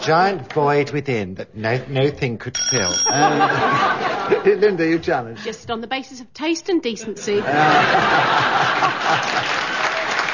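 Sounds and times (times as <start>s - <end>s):
speech: 0.0s - 9.6s
laughter: 3.1s - 5.4s, 7.0s - 10.2s
audience applause: 7.6s - 10.3s.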